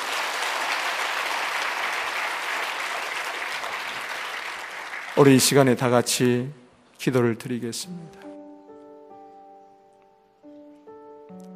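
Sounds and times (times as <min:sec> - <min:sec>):
crowd applauding: 0:00.0 - 0:05.8
speech: 0:05.2 - 0:08.3.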